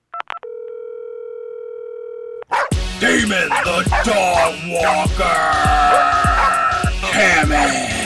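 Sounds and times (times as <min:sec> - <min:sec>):
telephone tone: 0:00.2 - 0:02.5
speech: 0:03.0 - 0:06.2, 0:07.2 - 0:07.9.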